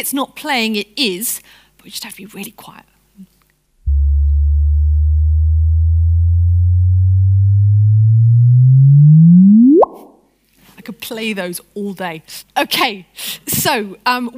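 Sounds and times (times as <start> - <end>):
speech: 0.0 - 3.3, 10.9 - 14.3
sonified gravitational-wave chirp from merging neutron stars: 3.9 - 10.2.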